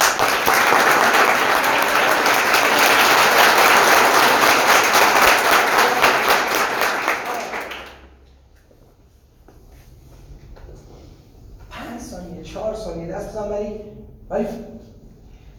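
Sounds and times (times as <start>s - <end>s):
group applause at a team meeting in an office: 0.0s - 8.2s.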